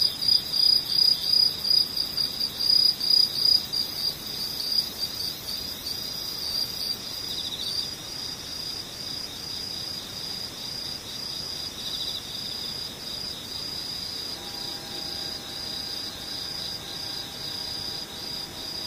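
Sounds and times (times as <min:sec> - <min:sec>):
insects trilling: 0:00.0 - 0:18.8
faint even tone: 0:14.3 - 0:18.8.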